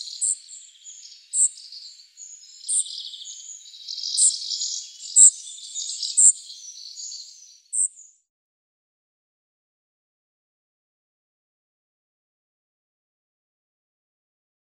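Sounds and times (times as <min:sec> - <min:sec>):
spotted flycatcher calling: 0:00.0 - 0:08.2.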